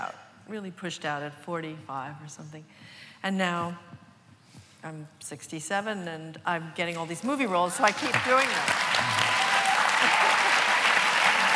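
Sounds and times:
speech: 0:00.1 - 0:04.0, 0:04.8 - 0:09.2
audience applause: 0:07.8 - 0:11.5.

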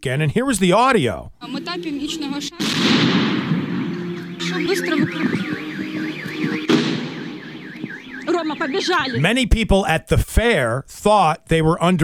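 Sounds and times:
speech: 0:00.0 - 0:03.5, 0:04.4 - 0:06.9, 0:08.4 - 0:12.0
wailing oscillating siren: 0:01.5 - 0:09.2
blasts from an anti-tank weapon's grenade launcher fired at a fair in Ukraine: 0:02.6 - 0:03.9, 0:06.7 - 0:07.4.

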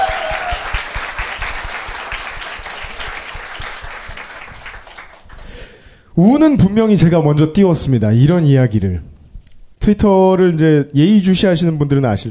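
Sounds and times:
audience applause: 0:00.0 - 0:05.5
speech: 0:06.2 - 0:09.1, 0:09.8 - 0:12.2.

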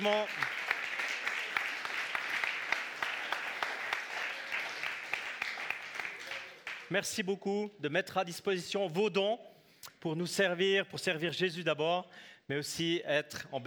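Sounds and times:
speech: 0:00.0 - 0:00.5, 0:06.9 - 0:13.6
audience applause: 0:00.0 - 0:06.9.

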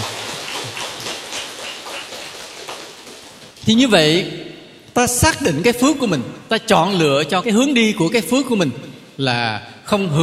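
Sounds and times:
applause: 0:00.0 - 0:03.6
speech: 0:03.7 - 0:04.4, 0:05.0 - 0:10.2.

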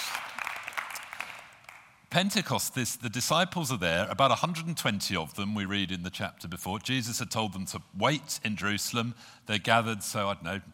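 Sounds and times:
round of applause from a group: 0:00.0 - 0:02.0
speech: 0:02.1 - 0:10.7.

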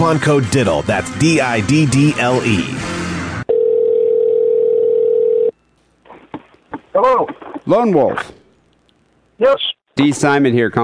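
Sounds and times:
speech: 0:00.0 - 0:03.0, 0:07.0 - 0:08.4, 0:09.4 - 0:10.8
telephone dial tone: 0:03.5 - 0:05.6.

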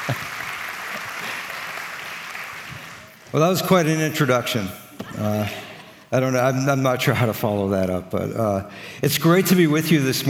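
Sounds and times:
audience applause welcoming a university professor: 0:00.0 - 0:03.9
speech: 0:00.1 - 0:00.3, 0:03.3 - 0:10.2.

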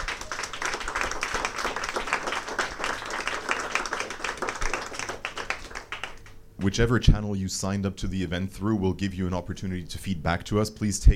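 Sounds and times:
audience applause: 0:00.0 - 0:06.4
speech: 0:06.6 - 0:11.1.

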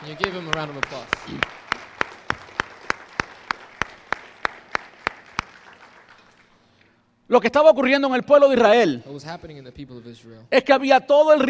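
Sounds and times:
speech: 0:00.0 - 0:01.7, 0:07.3 - 0:11.4
audience applauding: 0:00.0 - 0:06.8.

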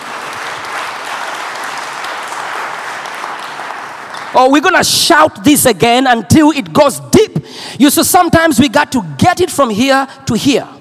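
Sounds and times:
audience clapping: 0:00.0 - 0:04.6
speech: 0:04.4 - 0:10.7.

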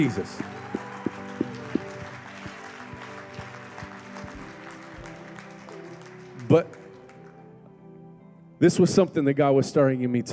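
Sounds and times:
speech: 0:00.0 - 0:00.6, 0:06.5 - 0:06.8, 0:08.6 - 0:10.3
audience clapping hands: 0:00.0 - 0:07.5.

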